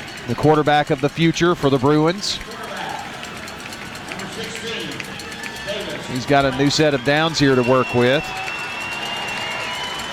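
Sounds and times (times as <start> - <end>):
crowd applauding at football game: 0.0 - 10.1
speech: 0.3 - 2.5, 5.8 - 8.5.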